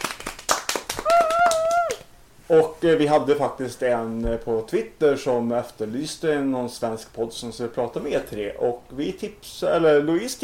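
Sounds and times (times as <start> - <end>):
brief hand clapping applause: 0.0 - 2.1
speech: 2.5 - 10.4.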